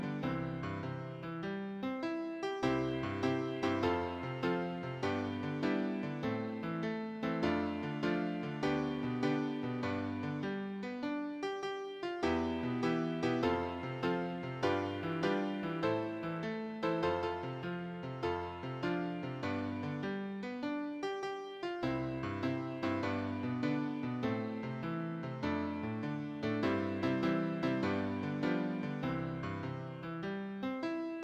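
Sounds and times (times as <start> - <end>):
piano accompaniment for church and sunday school hymns: 0.0 - 31.2.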